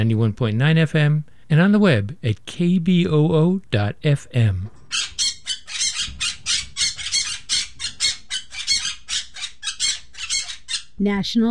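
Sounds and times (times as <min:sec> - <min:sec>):
speech: 0:00.0 - 0:05.2, 0:11.0 - 0:11.4
parrot squawking: 0:04.8 - 0:11.0.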